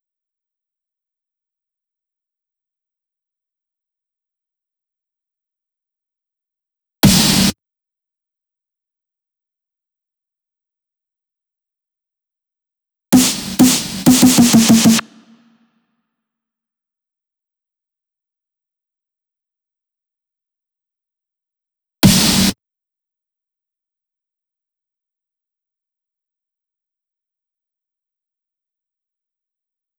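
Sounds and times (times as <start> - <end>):
drum loop with big snare: 7.0 - 7.5, 13.2 - 15.5, 22.0 - 22.5.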